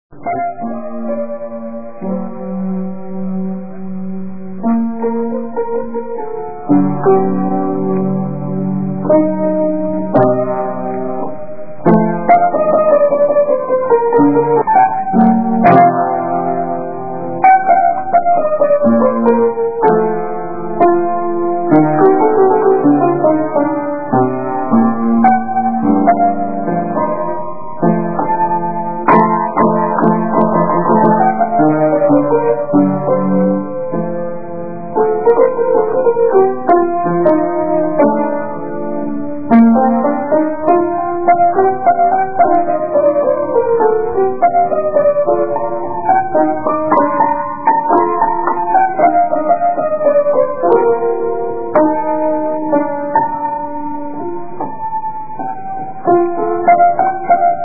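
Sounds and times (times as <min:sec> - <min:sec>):
piano: 0:00.1 - 0:57.6.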